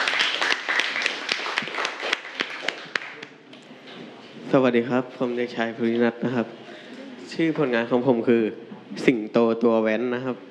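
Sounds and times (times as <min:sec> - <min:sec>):
room full of people applauding: 0:00.0 - 0:03.4
speech: 0:04.5 - 0:06.7, 0:07.4 - 0:10.4.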